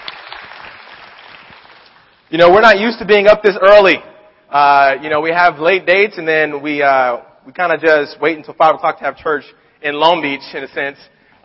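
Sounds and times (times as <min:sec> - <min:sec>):
crowd applauding: 0:00.0 - 0:02.3
speech: 0:02.3 - 0:11.2.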